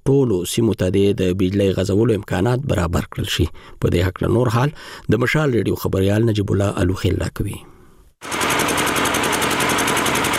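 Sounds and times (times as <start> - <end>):
speech: 0.0 - 8.4
old electricity generator running in Yaqubi bazaar, Sabari district: 8.2 - 10.3.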